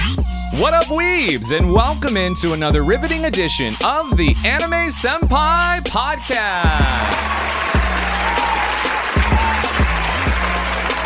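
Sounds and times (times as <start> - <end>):
speech: 0.5 - 7.5
applause: 6.7 - 11.0.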